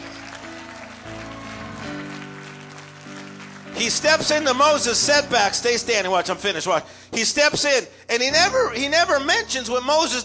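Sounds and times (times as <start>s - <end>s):
audience clapping: 0.0s - 5.6s
speech: 3.8s - 10.2s.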